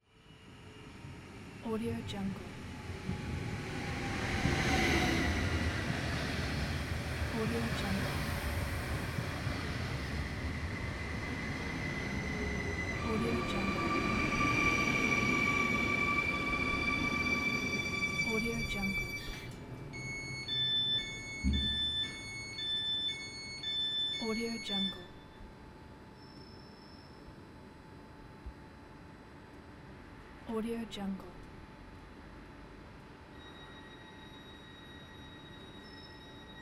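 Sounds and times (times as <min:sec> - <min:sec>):
train arriving at platform: 0:00.2 - 0:25.4, 0:33.3 - 0:36.6.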